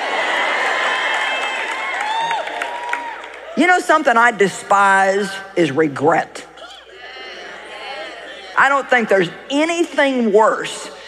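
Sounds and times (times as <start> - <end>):
crowd applause: 0.0 - 3.6
large crowd cheering: 0.0 - 4.1, 6.6 - 10.1
speech: 3.6 - 6.4, 8.6 - 11.0.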